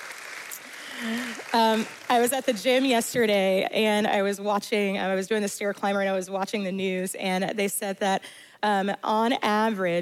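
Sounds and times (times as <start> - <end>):
audience applause: 0.0 - 2.3
speech: 1.5 - 9.9.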